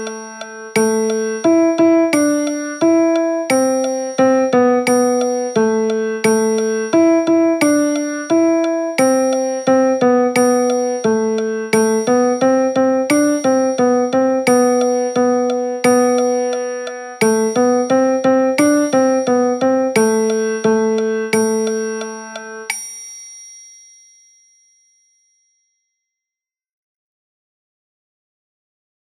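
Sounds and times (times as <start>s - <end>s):
piano music: 0.0s - 22.7s.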